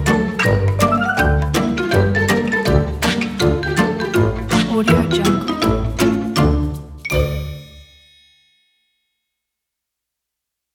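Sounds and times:
cartoon music: 0:00.0 - 0:07.9.

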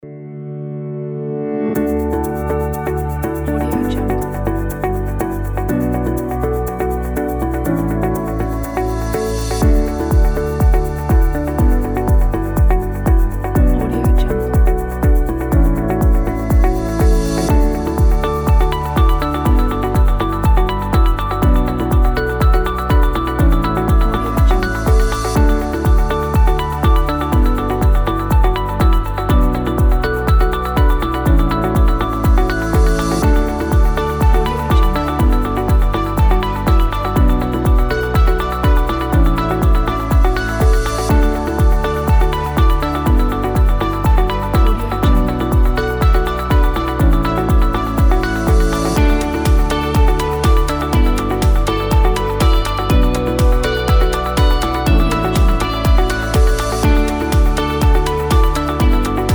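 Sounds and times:
happy background music: 0:01.7 - 0:59.3.

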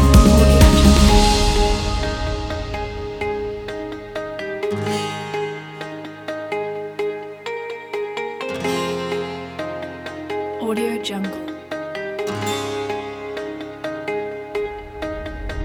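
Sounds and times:
folk corporate music: 0:00.0 - 0:15.6.

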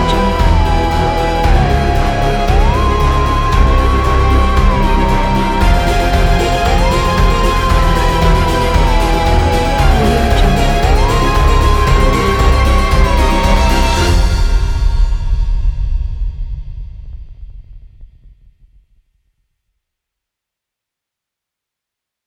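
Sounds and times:
spooky fun Halloween music: 0:00.0 - 0:16.0.

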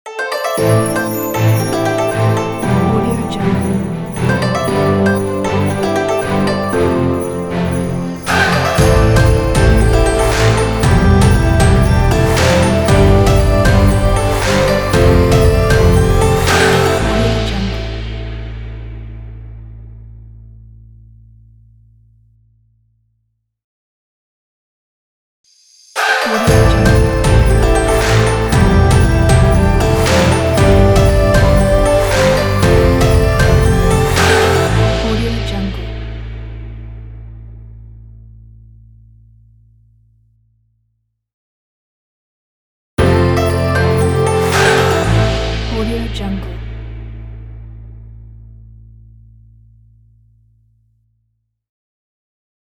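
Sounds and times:
Chinese world logo jingle: 0:00.2 - 0:19.6, 0:26.0 - 0:37.9, 0:43.0 - 0:48.6.

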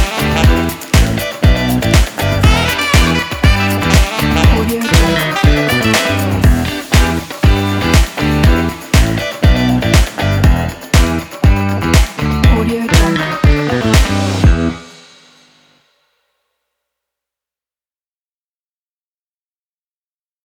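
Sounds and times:
funk drum kit: 0:00.0 - 0:15.7.

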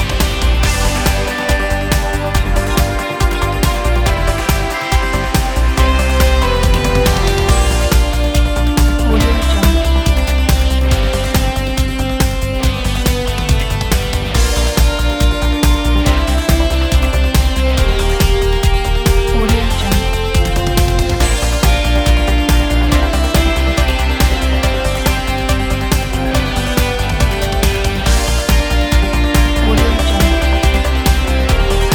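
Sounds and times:
energetic news and sports music: 0:00.0 - 0:31.9.

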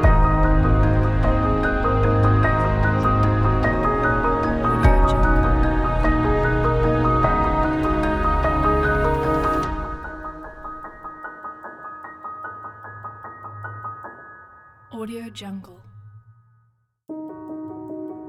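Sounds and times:
documentary music: 0:00.0 - 0:14.3.

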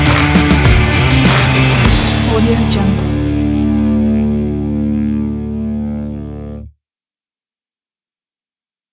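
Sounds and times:
hard rock music: 0:00.0 - 0:06.7.

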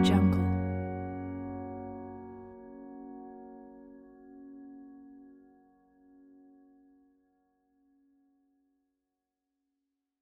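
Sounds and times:
curious innocent music: 0:00.0 - 0:07.5.

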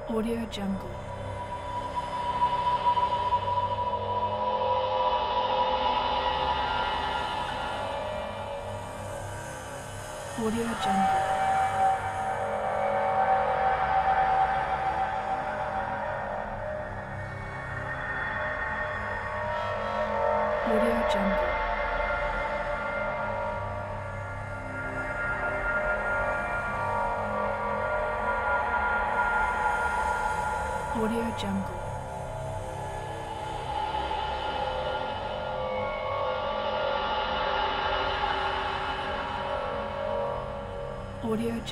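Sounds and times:
dark tunnel ambience: 0:00.0 - 0:41.7.

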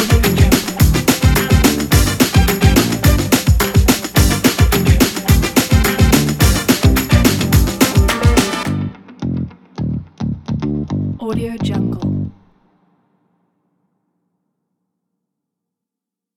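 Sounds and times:
funk music: 0:00.0 - 0:12.4.

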